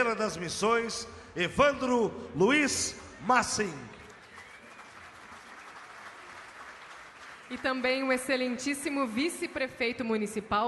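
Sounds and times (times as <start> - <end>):
speech: 0.0 - 3.9, 7.5 - 10.6
audience applause: 3.2 - 8.3.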